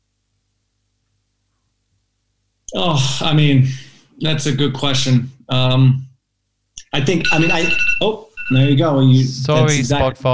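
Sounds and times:
speech: 2.7 - 6.0, 6.9 - 10.3
steady high-pitched tone: 6.8 - 8.8
electronic alarm chime: 7.0 - 8.8.

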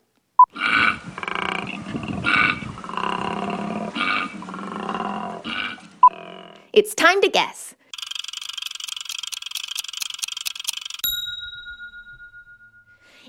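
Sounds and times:
koala bellowing call: 0.5 - 6.6
speech: 6.8 - 7.7
short tone blip: 11.0 - 13.2.

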